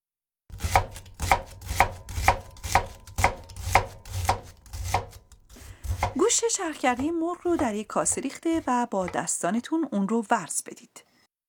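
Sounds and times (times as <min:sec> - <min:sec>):
knife dicing onion on cutting board: 0:00.5 - 0:09.4
speech: 0:06.4 - 0:11.1.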